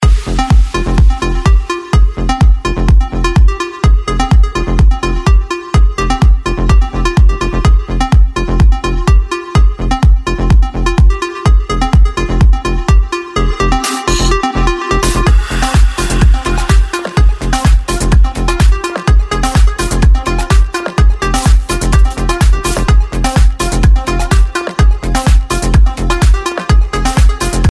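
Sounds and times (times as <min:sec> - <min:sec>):
rave music from an iPhone: 0:00.0 - 0:27.6.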